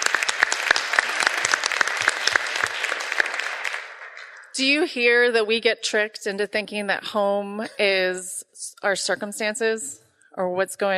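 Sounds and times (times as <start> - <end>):
warm audience applause: 0.0 - 4.6
speech: 4.6 - 10.9.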